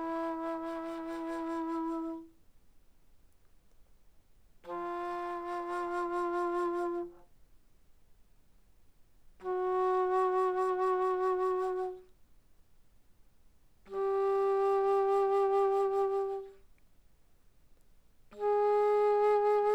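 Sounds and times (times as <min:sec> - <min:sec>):
bass flute played mezzo-forte: 0:00.0 - 0:02.3, 0:04.6 - 0:07.2, 0:09.4 - 0:12.1, 0:13.9 - 0:16.6, 0:18.3 - 0:19.7.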